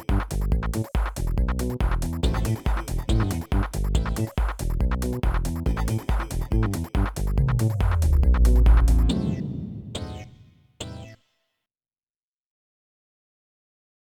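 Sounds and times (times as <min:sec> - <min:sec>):
8-bit song: 0:00.0 - 0:11.2.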